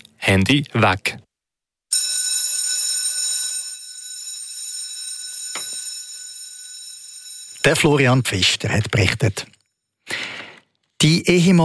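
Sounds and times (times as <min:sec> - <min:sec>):
speech: 0:00.2 - 0:01.2, 0:07.6 - 0:09.6, 0:11.0 - 0:11.6
school bell ringing: 0:01.9 - 0:08.7.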